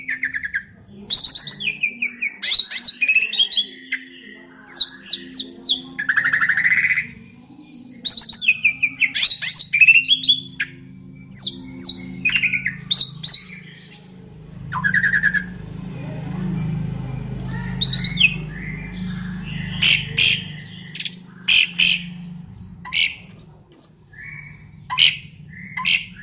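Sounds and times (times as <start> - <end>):
Asian pied starling song: 0.0 - 26.2
low hum: 3.7 - 26.2.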